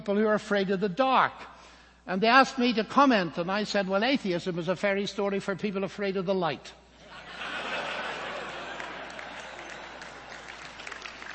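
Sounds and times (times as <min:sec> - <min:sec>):
speech: 0:00.0 - 0:01.5, 0:02.1 - 0:07.6
laughter: 0:07.0 - 0:10.7
audience clapping: 0:08.1 - 0:11.3.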